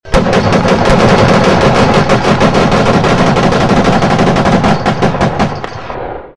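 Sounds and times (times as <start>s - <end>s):
B-17 ball turret firing: 0.0s - 6.3s.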